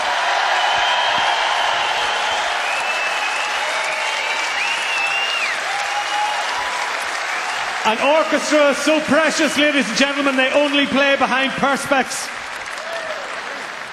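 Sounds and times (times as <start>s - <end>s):
concert crowd applause: 0.0s - 13.9s
high whistles: 0.4s - 6.4s
speech: 7.9s - 12.4s.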